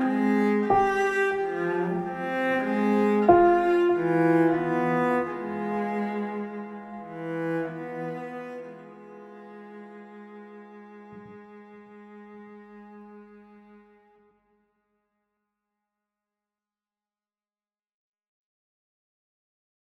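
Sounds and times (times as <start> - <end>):
piano: 0.0 - 14.1
cello: 0.0 - 14.4.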